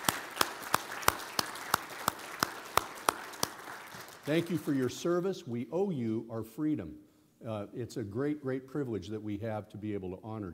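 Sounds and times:
rhythmic audience applause honouring military veterans: 0.0 - 5.0
speech: 4.2 - 10.5.

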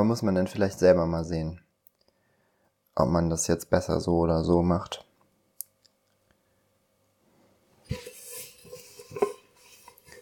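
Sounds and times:
speech: 0.0 - 1.6, 3.0 - 5.1
large cooking pot being handled while drying dishes: 7.9 - 10.1.

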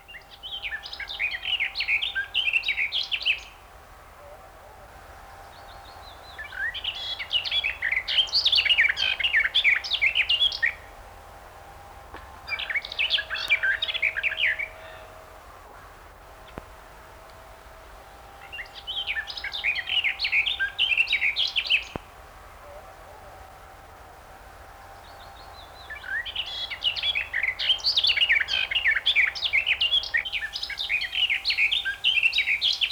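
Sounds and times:
garden warbler song: 0.0 - 3.9, 5.2 - 32.9.

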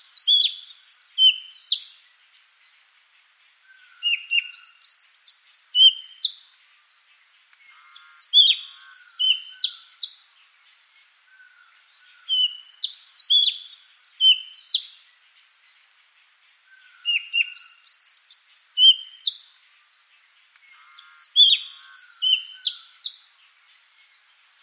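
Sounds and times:
Madagascar magpie-robin song of loud whistled and slurred notes: 0.0 - 2.1, 3.7 - 6.5, 7.7 - 10.3, 12.2 - 15.2, 16.7 - 19.5, 20.7 - 24.6.

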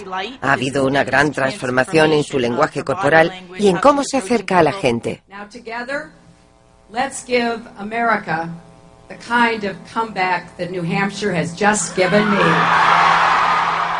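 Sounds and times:
speech: 0.0 - 6.2, 6.9 - 13.3
crowd applauding: 12.0 - 13.9.

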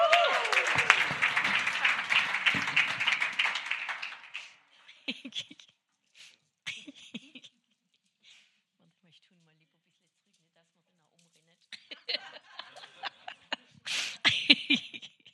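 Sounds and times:
audience applause: 0.0 - 4.6
laughter: 0.0 - 5.6, 11.8 - 15.3.

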